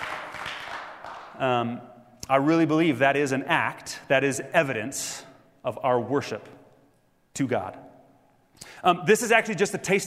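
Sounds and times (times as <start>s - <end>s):
audience clapping: 0.0s - 1.4s
speech: 1.4s - 6.6s, 7.4s - 7.8s, 8.8s - 10.0s.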